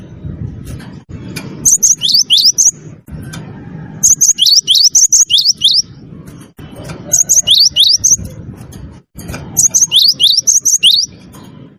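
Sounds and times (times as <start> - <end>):
low rumble: 0.0 - 4.3, 5.8 - 10.0
bird chirping song: 1.6 - 2.9, 4.0 - 6.0, 6.8 - 8.4, 9.4 - 11.5.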